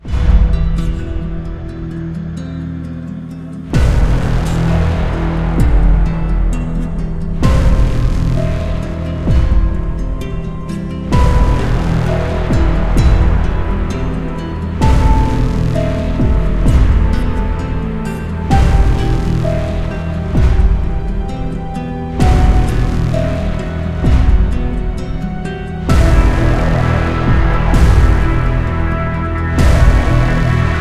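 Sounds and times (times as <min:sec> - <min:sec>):
guitar music: 0:00.0 - 0:30.7.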